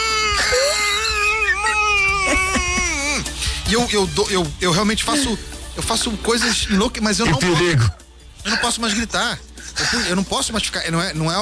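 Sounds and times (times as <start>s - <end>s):
laughter: 0.0s - 11.4s
speech: 3.7s - 11.4s
person groaning imitating a goal celebration: 6.6s - 8.0s.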